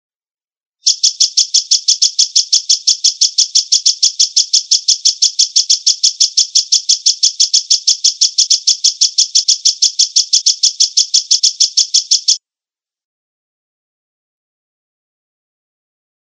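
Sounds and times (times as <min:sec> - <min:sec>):
Java sparrow song of short clicking high notes: 0:00.8 - 0:12.4.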